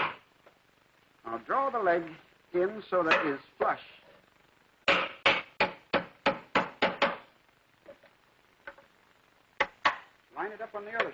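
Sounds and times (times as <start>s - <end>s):
speech: 1.4s - 4.0s, 10.5s - 11.1s
hammer driving nails into wooden furniture: 4.9s - 7.2s.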